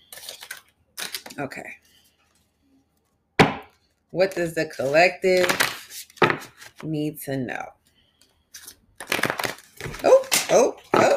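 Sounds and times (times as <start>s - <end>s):
tarot cards being shuffled and spilling out of the deck: 0.0s - 1.4s, 4.2s - 6.9s, 8.5s - 11.1s
speech: 1.4s - 1.8s, 4.1s - 5.7s, 6.8s - 7.8s, 10.5s - 10.8s.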